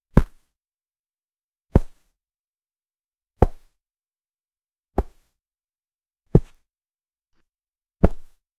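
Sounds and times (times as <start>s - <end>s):
object hitting the palm: 0.2s - 0.4s, 1.7s - 2.0s, 3.4s - 3.7s, 5.0s - 5.2s, 6.3s - 6.6s, 8.0s - 8.4s.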